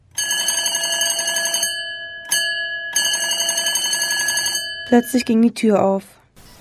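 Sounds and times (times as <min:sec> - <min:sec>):
doorbell ringing: 0:00.2 - 0:05.2
speech: 0:04.9 - 0:06.2.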